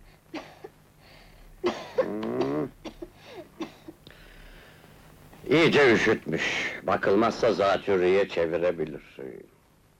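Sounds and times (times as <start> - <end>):
child coughing: 1.6 - 4.0
speech: 5.5 - 9.5.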